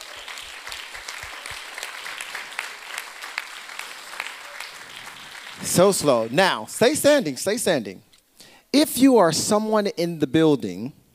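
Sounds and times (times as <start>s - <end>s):
crowd clapping: 0.0s - 7.3s
speech: 5.6s - 8.1s, 8.7s - 11.0s.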